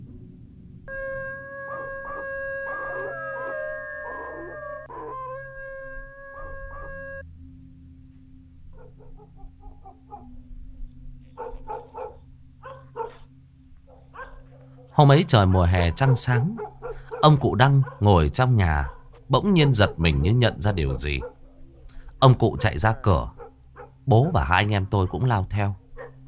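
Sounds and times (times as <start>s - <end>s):
dogs howling outside the gate: 0.9s - 7.2s, 8.7s - 10.4s, 11.3s - 13.3s, 13.9s - 21.8s, 22.4s - 24.1s, 25.9s - 26.2s
speech: 15.0s - 21.3s, 22.2s - 23.4s, 24.0s - 25.8s.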